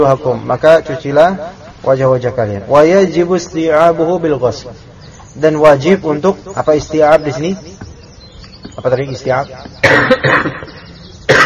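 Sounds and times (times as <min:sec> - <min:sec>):
speech: 0:00.0 - 0:07.8, 0:08.7 - 0:11.4
harsh coughs: 0:09.8 - 0:11.4.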